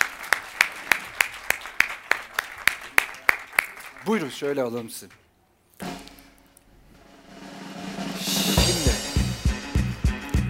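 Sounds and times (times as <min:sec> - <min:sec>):
audience applause for arriving guests: 0:00.0 - 0:04.6
crowd noise: 0:00.0 - 0:06.4, 0:08.2 - 0:10.4
speech: 0:04.1 - 0:05.2.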